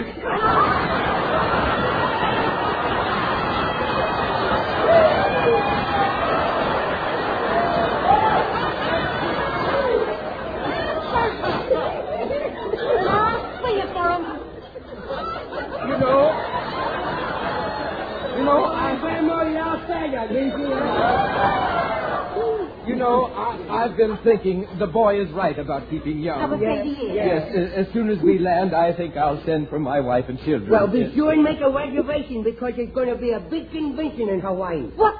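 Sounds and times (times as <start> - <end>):
people laughing and snickering: 0.0 - 27.1
crowd chattering: 0.0 - 32.6
speech: 24.0 - 35.1.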